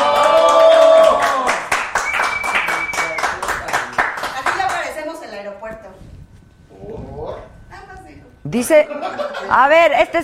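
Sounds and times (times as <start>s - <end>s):
audience applause: 0.0s - 4.9s
speech: 8.5s - 10.2s
laughter: 8.8s - 10.1s.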